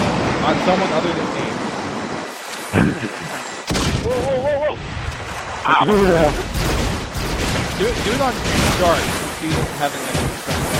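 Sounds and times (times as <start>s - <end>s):
speech: 0.5s - 1.7s, 2.7s - 5.0s, 5.6s - 6.8s, 7.4s - 10.7s
grenade launcher shots in a video game: 6.5s - 10.7s.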